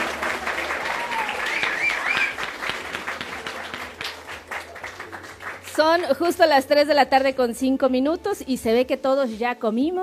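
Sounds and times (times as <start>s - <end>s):
crowd of students clapping and cheering at Escuela Preparatoria número 9: 0.0s - 6.6s
speech: 5.8s - 10.0s.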